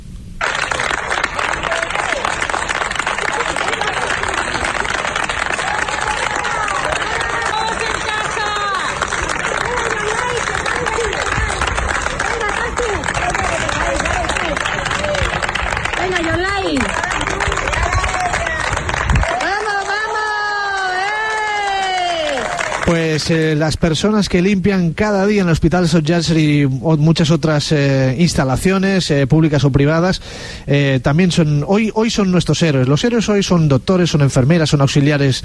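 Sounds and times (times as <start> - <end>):
hospital staff applauding: 0.4 - 23.6
speech: 23.2 - 35.4.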